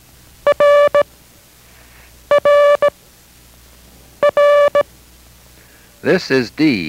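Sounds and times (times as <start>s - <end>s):
Morse code letter R tone: 0.5s - 1.1s, 2.3s - 3.0s, 4.2s - 4.9s
speech: 6.0s - 6.8s.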